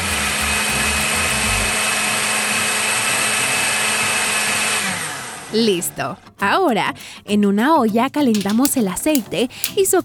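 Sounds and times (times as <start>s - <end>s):
blender puréeing corn kernels with vegetable broth: 0.0s - 6.0s
speech: 5.5s - 10.0s.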